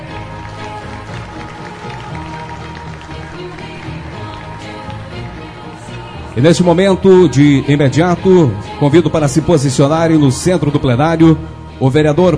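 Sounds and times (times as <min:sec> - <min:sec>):
round of applause: 0:00.0 - 0:06.3
speech: 0:06.4 - 0:12.3.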